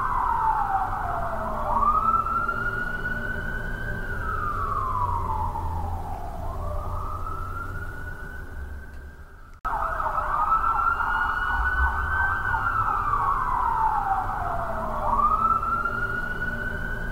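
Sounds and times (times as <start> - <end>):
busy city ambience: 0.0 - 17.1
police siren in busy city: 0.0 - 17.1.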